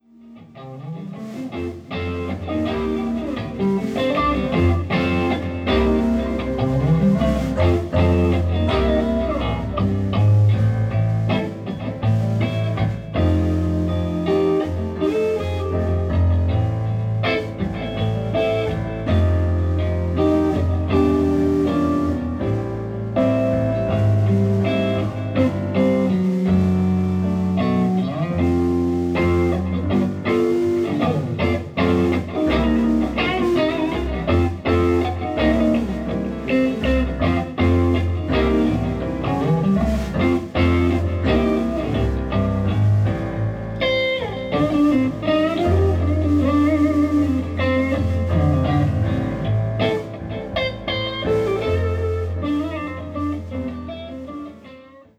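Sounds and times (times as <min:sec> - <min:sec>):
blues music: 0:00.0 - 0:55.1.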